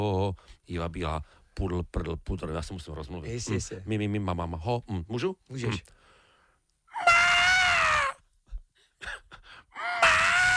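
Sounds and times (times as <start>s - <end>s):
speech: 0.0s - 6.0s
voice imitating a wapiti elk's bugle: 7.0s - 8.2s, 9.8s - 10.5s.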